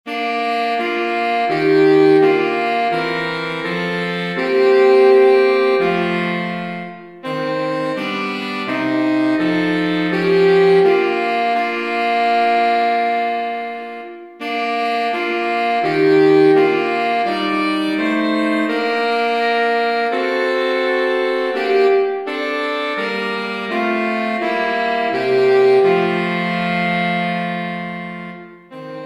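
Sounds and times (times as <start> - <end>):
saxophone trio playing: 0.1 - 29.0.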